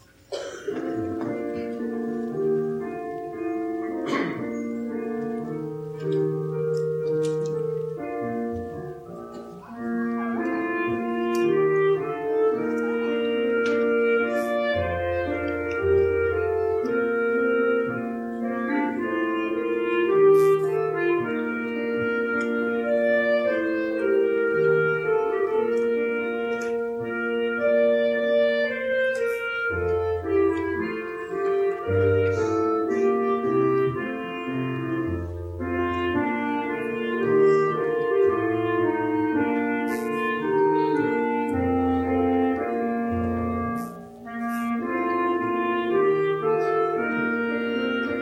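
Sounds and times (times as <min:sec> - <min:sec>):
clarinet: 0:00.0 - 0:48.2.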